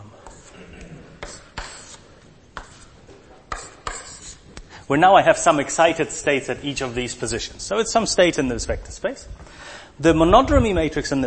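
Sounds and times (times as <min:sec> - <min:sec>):
drawing on a board during a physics lecture: 0:01.2 - 0:04.5
speech: 0:04.9 - 0:11.2.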